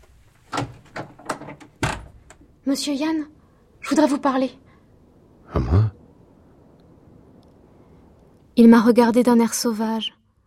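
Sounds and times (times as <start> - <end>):
door opening: 0.5 - 2.5
speech: 2.6 - 4.6, 8.6 - 10.2.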